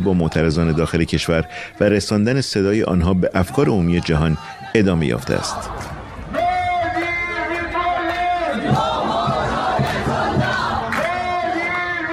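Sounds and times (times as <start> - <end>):
speech: 0.0 - 5.9
crowd chanting at an Iranian diaspora protest rally in Sweden: 4.0 - 12.1.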